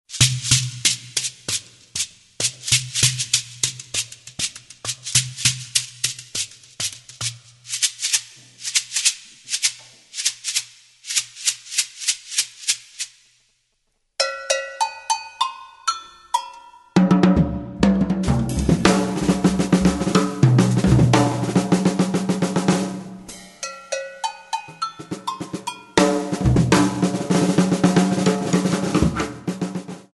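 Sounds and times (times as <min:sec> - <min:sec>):
drums: 0:00.0 - 0:13.2, 0:17.0 - 0:30.1.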